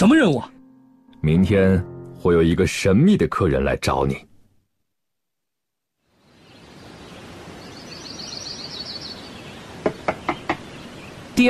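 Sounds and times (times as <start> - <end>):
speech: 0.0 - 0.6, 1.2 - 4.3
urgent knocking on a door: 9.8 - 10.6.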